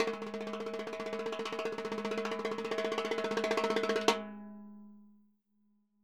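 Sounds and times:
Roland MV8800 percussion: 0:00.0 - 0:04.6.

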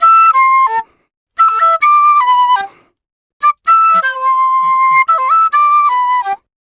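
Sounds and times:
penny whistle in C: 0:00.0 - 0:02.8, 0:03.4 - 0:06.5.

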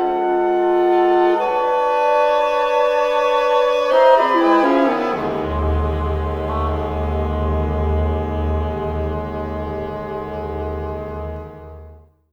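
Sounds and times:
full orchestra chord in F: 0:00.2 - 0:12.1.

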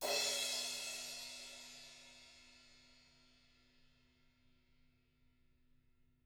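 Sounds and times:
16-inch crash cymbal: 0:00.0 - 0:03.4.

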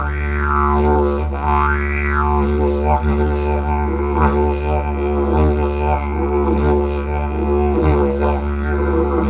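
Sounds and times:
didgeridoo: 0:00.0 - 0:09.2.

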